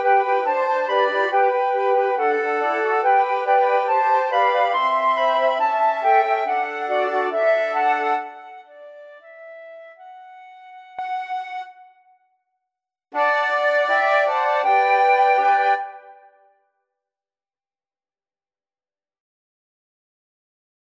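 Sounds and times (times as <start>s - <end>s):
flute choir: 0.0s - 12.2s, 13.2s - 16.5s.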